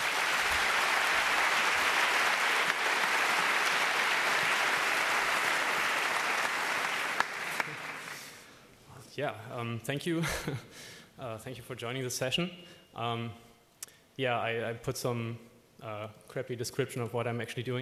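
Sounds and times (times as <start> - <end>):
audience applause for a talk: 0.0 - 8.5
speech: 9.2 - 13.4, 14.2 - 17.7.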